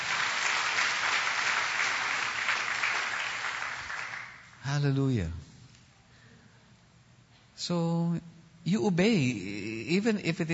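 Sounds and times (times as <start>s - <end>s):
congregation applauding in church: 0.0s - 4.7s
speech: 4.6s - 5.5s, 7.6s - 10.5s.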